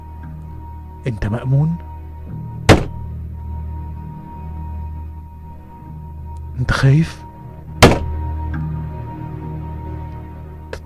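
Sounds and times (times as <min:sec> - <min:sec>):
low steady hum: 0:00.0 - 0:10.8
speech: 0:01.0 - 0:02.4, 0:06.6 - 0:07.3
single sharp knock in a horror drama: 0:02.7 - 0:03.0, 0:07.8 - 0:08.2.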